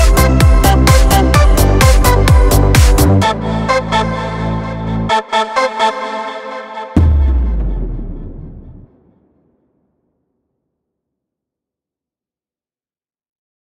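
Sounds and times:
disco house techno music: 0.0 - 8.8.

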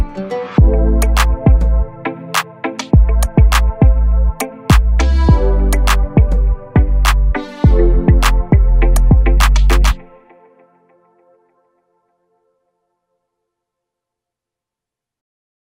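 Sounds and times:
oriental trap beat with Balkan hip hop instrumental: 0.6 - 1.8, 2.4 - 4.1, 4.7 - 10.0.

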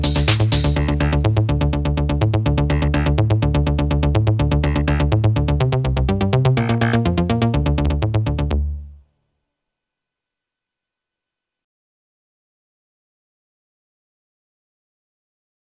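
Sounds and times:
euro disco remix on Korg Pa5X and Korg Kronos: 0.0 - 8.6.

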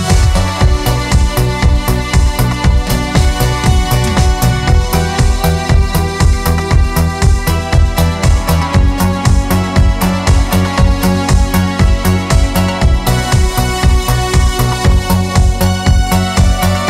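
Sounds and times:
keyboard modern beat: 0.0 - 16.8.

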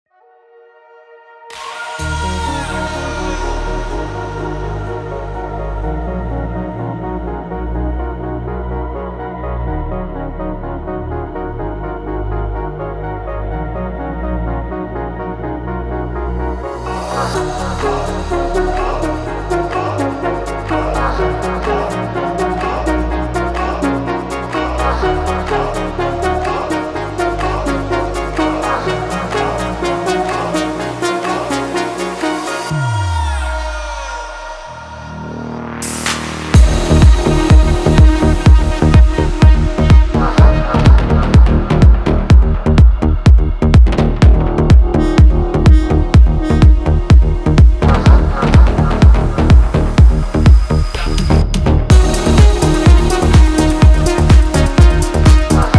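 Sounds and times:
melodic techno remix: 1.5 - 55.7.

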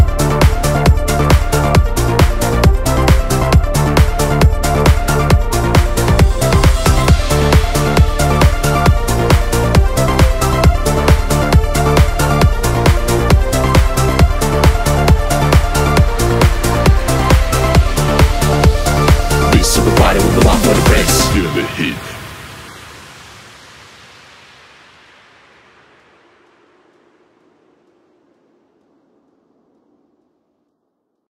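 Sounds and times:
eurodance music: 0.0 - 22.8.

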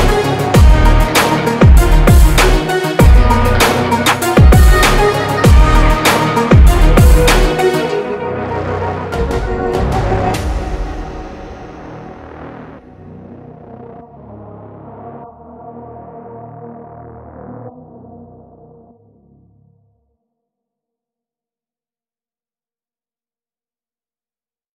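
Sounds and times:
hard uplifting motivational rap beat: 0.0 - 10.5.

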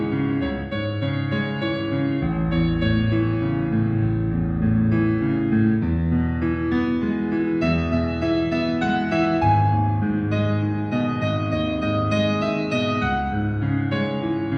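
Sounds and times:
piano karaoke MIDI music: 0.0 - 14.5.

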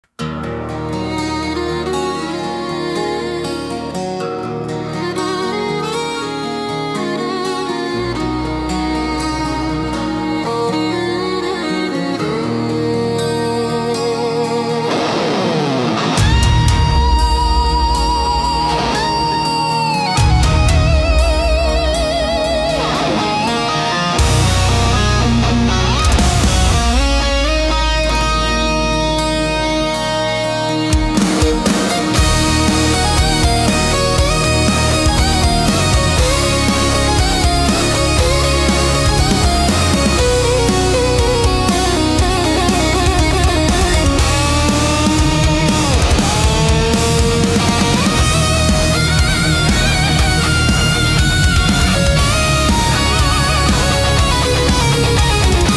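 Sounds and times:
epic country metal track: 0.2 - 55.7.

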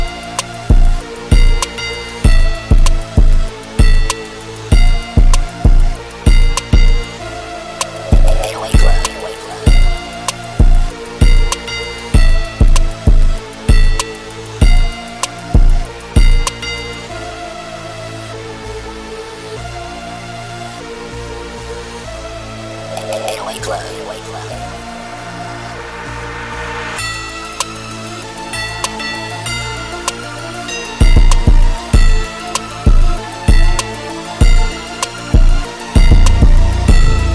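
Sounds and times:
instrumental type beat: 0.0 - 17.1, 22.8 - 24.8, 27.0 - 37.3.

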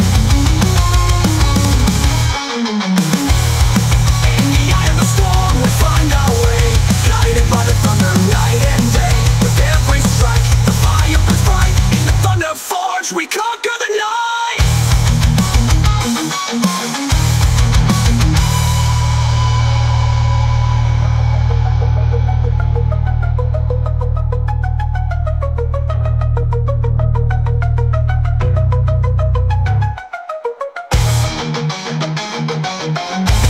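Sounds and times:
heavy metal music: 0.0 - 33.4.

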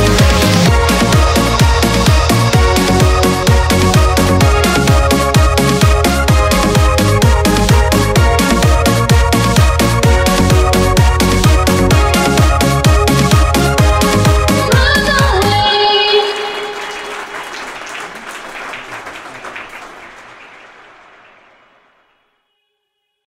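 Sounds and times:
shuffle dance eurodance remix: 0.0 - 17.0.

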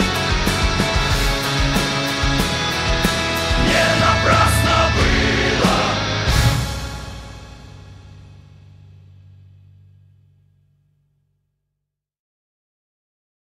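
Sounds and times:
epic power metal music: 0.0 - 9.6.

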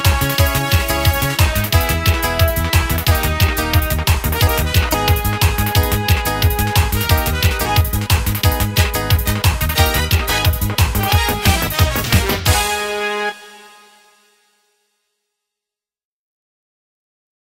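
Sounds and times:
Turkmen songs karaoke backing track: 0.0 - 13.6.

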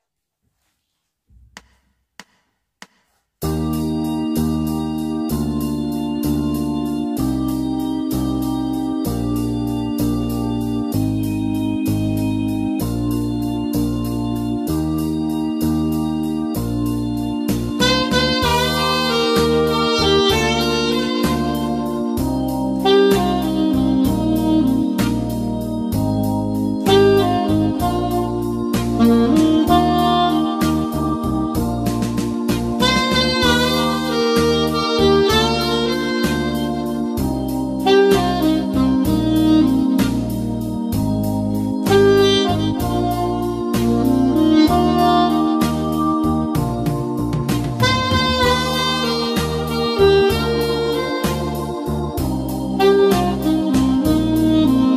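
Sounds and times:
alto saxophone: 3.5 - 54.9.

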